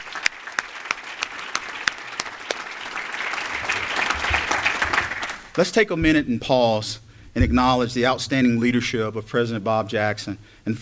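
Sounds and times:
crowd clapping: 0.0s - 5.6s
speech: 5.6s - 10.8s.

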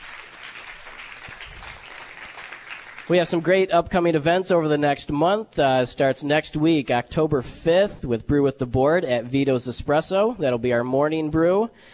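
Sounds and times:
audience applause welcoming new business members: 0.0s - 3.4s
speech: 3.1s - 11.9s.

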